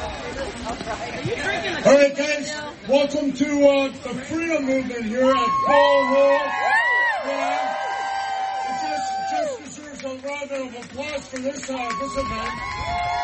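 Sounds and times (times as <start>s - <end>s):
speech: 0.9s - 6.7s, 10.0s - 13.1s
crowd applause and cheering: 5.3s - 13.2s.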